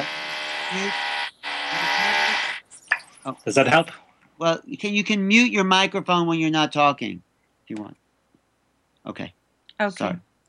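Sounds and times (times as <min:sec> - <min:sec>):
loud drilling whine: 0:00.0 - 0:02.6
speech: 0:00.7 - 0:01.1, 0:03.2 - 0:08.0, 0:09.0 - 0:10.3.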